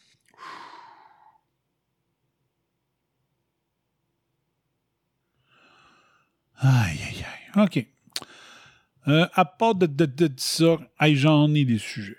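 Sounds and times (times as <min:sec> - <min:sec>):
slow deep human breaths: 0:00.3 - 0:01.5, 0:05.4 - 0:06.4, 0:08.2 - 0:09.0
speech: 0:06.6 - 0:08.0, 0:09.0 - 0:12.1.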